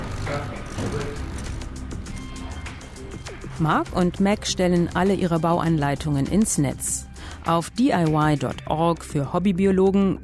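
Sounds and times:
small electric motors humming: 0:00.0 - 0:03.2
speech: 0:03.6 - 0:10.2.

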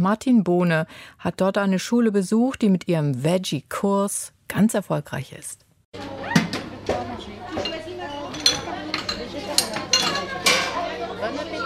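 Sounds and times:
speech: 0:00.0 - 0:06.1
adult voices: 0:06.0 - 0:11.6
children's chatter: 0:06.0 - 0:11.6
dishes, plates and cutlery clinking during primary school canteen lunch service in Bondy: 0:06.4 - 0:11.1.

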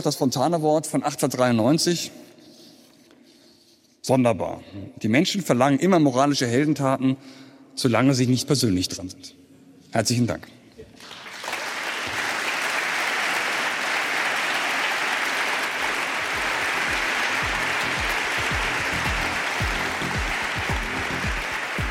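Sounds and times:
speech: 0:00.0 - 0:02.3, 0:04.0 - 0:10.6
long applause: 0:11.0 - 0:21.8.

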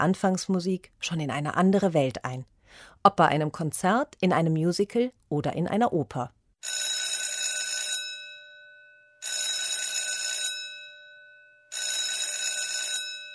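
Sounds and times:
speech: 0:00.0 - 0:06.4
theatre bell ringing: 0:06.6 - 0:13.3.

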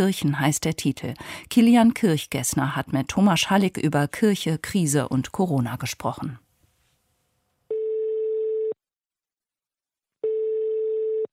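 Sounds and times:
speech: 0:00.0 - 0:06.4
telephone line tone: 0:07.7 - 0:08.8, 0:10.2 - 0:11.3.

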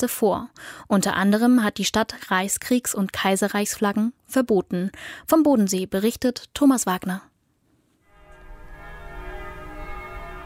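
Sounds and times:
speech: 0:00.0 - 0:07.3
church bell of the Konstanzer Münster striking from cathedral tower: 0:08.1 - 0:10.4.

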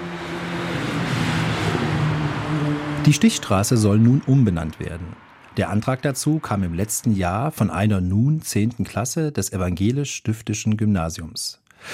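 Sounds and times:
cars passing on a busy road: 0:00.0 - 0:08.5
speech: 0:03.0 - 0:11.9.

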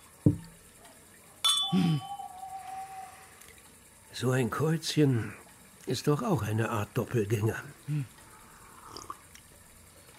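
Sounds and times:
speech: 0:00.3 - 0:00.5, 0:01.7 - 0:02.1, 0:04.2 - 0:08.2
glass clinking: 0:01.4 - 0:02.4
gulps and swallows: 0:08.7 - 0:09.4.

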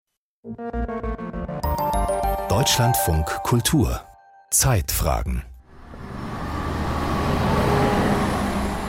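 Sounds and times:
speech: 0:00.4 - 0:01.3, 0:02.5 - 0:05.5
city street traffic at Berlin Friedrichstraße: 0:05.6 - 0:08.8.

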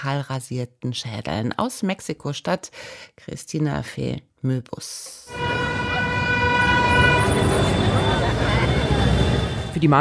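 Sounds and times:
speech: 0:00.0 - 0:05.8, 0:09.8 - 0:09.9
horn-like tones: 0:05.3 - 0:09.8
traffic on busy central streets of Mexico City: 0:05.3 - 0:09.8.

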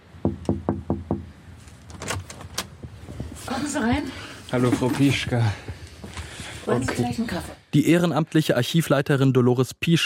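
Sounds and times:
firm knocking on a door: 0:00.2 - 0:01.3
scraping rustling noise: 0:01.6 - 0:05.4
speech: 0:03.6 - 0:05.7, 0:06.7 - 0:10.0.

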